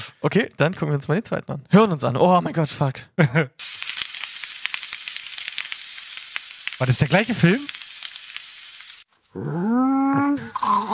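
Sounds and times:
speech: 0:00.2 - 0:03.7, 0:06.8 - 0:07.8, 0:09.3 - 0:10.9
food sizzling on a grill: 0:03.6 - 0:09.1, 0:10.5 - 0:10.9.

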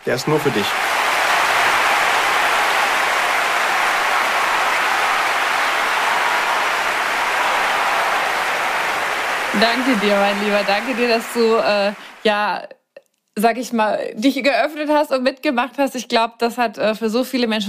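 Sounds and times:
speech: 0:00.0 - 0:01.0, 0:09.6 - 0:12.8, 0:13.4 - 0:17.6
recorded applause: 0:00.0 - 0:12.4.

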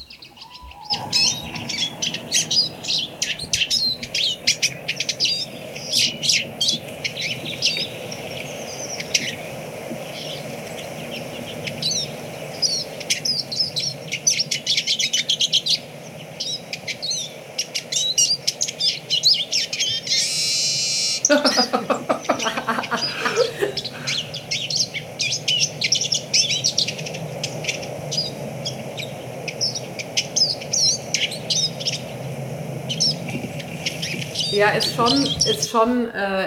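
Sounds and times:
Eurasian siskin singing: 0:00.0 - 0:35.8
laughter: 0:21.3 - 0:24.4
speech: 0:35.0 - 0:36.4.

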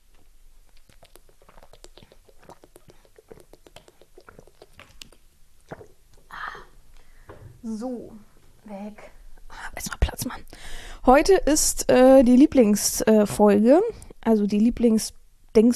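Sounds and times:
drinking water from a water bottle, gulps and swallowing: 0:00.0 - 0:07.1
speech: 0:07.6 - 0:09.2, 0:10.2 - 0:15.7.

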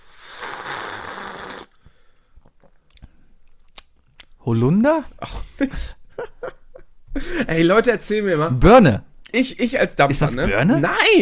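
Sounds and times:
big slurping sip of tea: 0:00.0 - 0:01.8
mouth smacking, swallowing and clicks: 0:02.4 - 0:04.3
speech: 0:04.4 - 0:06.0, 0:07.4 - 0:11.1.

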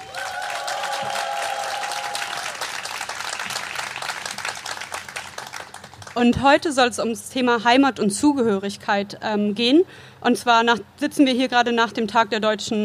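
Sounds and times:
crowd whooping and cheering: 0:00.0 - 0:05.2
live audience applause: 0:00.0 - 0:06.2
speech: 0:06.2 - 0:12.8.

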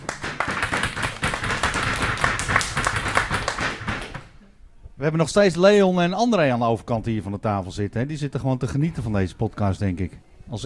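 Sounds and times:
small group clapping: 0:00.0 - 0:04.4
speech: 0:05.0 - 0:10.6.

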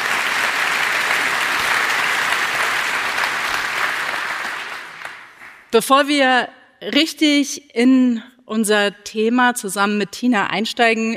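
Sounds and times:
audience applause: 0:00.0 - 0:05.7
speech: 0:05.7 - 0:11.1.

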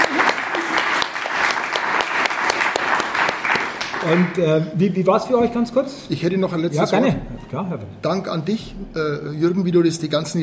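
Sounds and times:
audience applause: 0:00.0 - 0:04.6
speech: 0:04.1 - 0:10.4.

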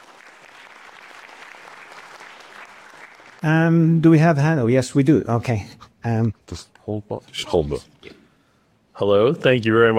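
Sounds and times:
audience applause: 0:00.0 - 0:03.4
speech: 0:03.4 - 0:08.2, 0:09.0 - 0:09.9.

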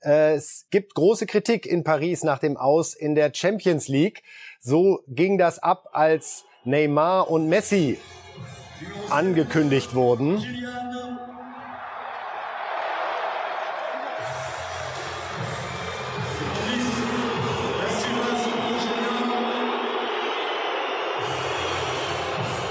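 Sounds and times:
speech: 0:00.0 - 0:10.9
loud stadium crowd cheering then booing: 0:05.8 - 0:22.7.

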